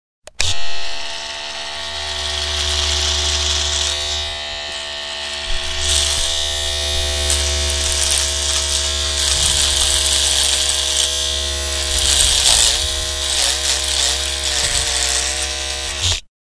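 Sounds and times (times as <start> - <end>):
razor: 0.3 - 16.3.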